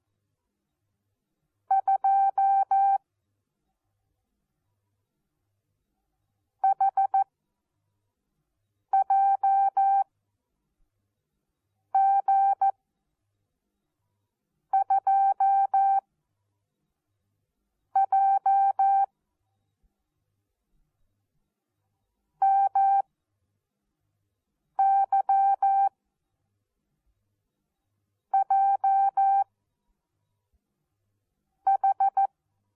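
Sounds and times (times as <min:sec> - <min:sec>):
morse code beeps: 0:01.7 - 0:03.0, 0:06.6 - 0:07.3, 0:09.0 - 0:10.0, 0:12.0 - 0:12.7, 0:14.8 - 0:16.0, 0:18.0 - 0:19.1, 0:22.4 - 0:23.0, 0:24.8 - 0:25.9, 0:28.4 - 0:29.5, 0:31.7 - 0:32.3.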